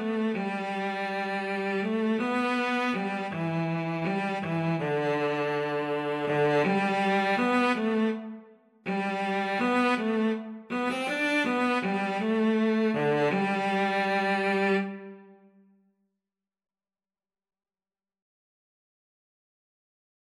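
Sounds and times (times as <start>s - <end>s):
cello duet: 0.0s - 15.4s.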